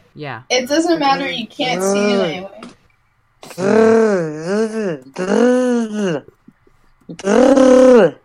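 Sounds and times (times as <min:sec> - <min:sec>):
speech: 0:00.2 - 0:02.8, 0:03.5 - 0:06.3, 0:07.1 - 0:08.2
person imitating a Wookiee roar: 0:03.5 - 0:06.3, 0:07.1 - 0:08.2.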